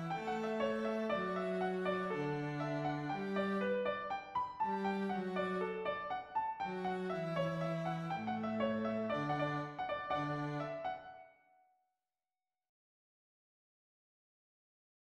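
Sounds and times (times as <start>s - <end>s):
slow reel played on viola and cello: 0.0s - 6.0s, 6.6s - 11.0s.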